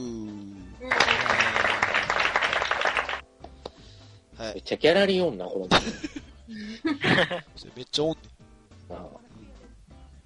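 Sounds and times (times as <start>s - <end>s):
applause: 0.8s - 3.2s
speech: 4.5s - 8.3s
laughter: 5.7s - 7.5s.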